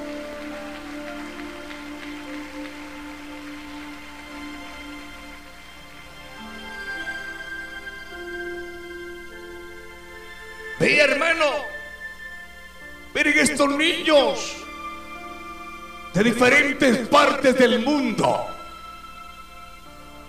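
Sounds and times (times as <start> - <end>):
audience applause: 0.0 - 11.2
sustained musical tones: 0.0 - 20.2
speech: 10.8 - 11.7, 13.2 - 14.6, 16.2 - 18.5.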